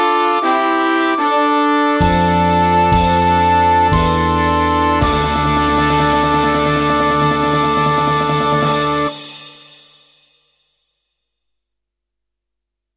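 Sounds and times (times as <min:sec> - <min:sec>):
recorder playing: 0:00.0 - 0:09.3.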